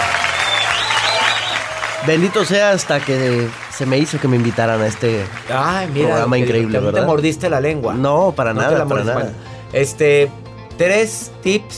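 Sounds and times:
audience applause: 0:00.0 - 0:06.4
speech: 0:02.1 - 0:11.7.

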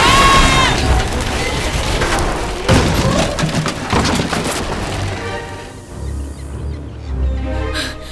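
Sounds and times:
old-timey ship crashing past: 0:00.0 - 0:05.9.

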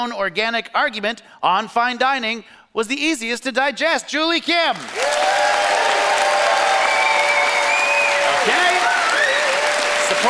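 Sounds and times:
speech: 0:00.0 - 0:05.4
audience applause: 0:04.8 - 0:10.2
faint cheers and whoops: 0:05.0 - 0:10.2.

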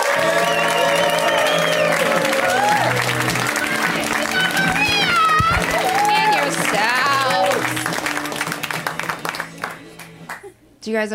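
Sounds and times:
whoops and shouting voices: 0:00.0 - 0:03.0, 0:04.4 - 0:07.6
comedy show audience applause for a comedian: 0:00.0 - 0:10.5
speech: 0:10.9 - 0:11.1.

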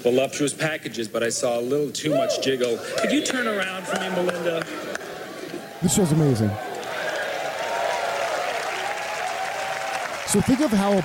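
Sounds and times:
speech: 0:00.0 - 0:05.0, 0:05.8 - 0:06.7, 0:10.3 - 0:11.0
studio audience cheering and applauding: 0:02.2 - 0:11.0.

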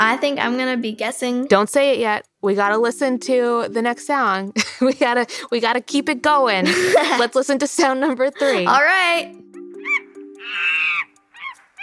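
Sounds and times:
speech: 0:00.1 - 0:09.4
monkey screaming excitedly: 0:09.8 - 0:11.8.

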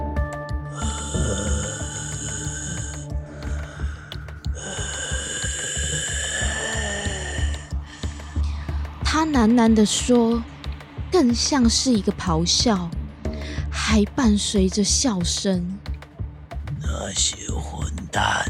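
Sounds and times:
low throbbing hum: 0:00.5 - 0:17.1
heavy laboured breathing: 0:00.7 - 0:09.0
speech: 0:09.3 - 0:10.5, 0:11.1 - 0:13.0, 0:13.7 - 0:15.9, 0:17.1 - 0:18.4.

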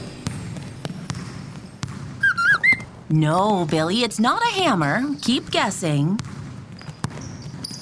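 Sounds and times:
basketball bouncing on a hard floor: 0:00.0 - 0:07.7
sneaker squeaks: 0:00.2 - 0:03.1, 0:06.2 - 0:07.7
speech: 0:03.1 - 0:06.4.

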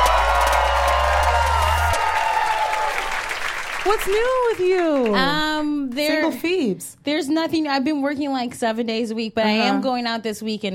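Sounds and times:
live audience cheering and applauding: 0:00.0 - 0:06.2
speech: 0:03.9 - 0:10.7.

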